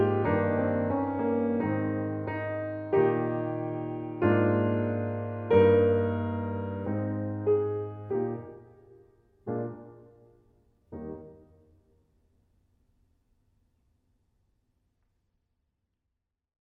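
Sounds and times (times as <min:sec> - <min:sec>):
piano: 0:00.0 - 0:11.9.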